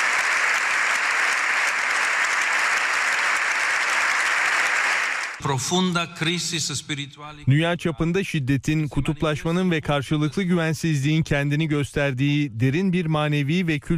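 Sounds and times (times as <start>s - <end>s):
large audience applause in a parliament chamber: 0.0s - 5.4s
speech: 5.4s - 13.9s.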